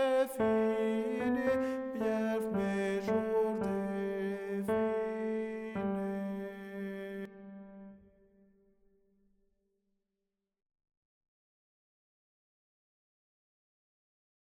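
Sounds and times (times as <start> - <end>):
tenor voice singing: 0.0 - 7.8.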